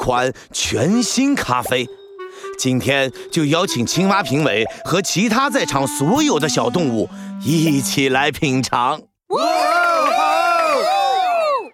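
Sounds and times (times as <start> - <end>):
speech: 0.0 - 9.7
crowd cheering and whooping: 9.3 - 11.7.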